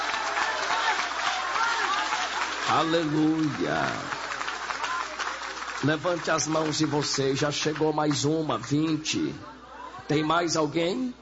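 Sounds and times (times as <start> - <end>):
audience applause: 0.0 - 8.9
speech: 2.7 - 4.2, 5.8 - 9.5, 10.1 - 11.2.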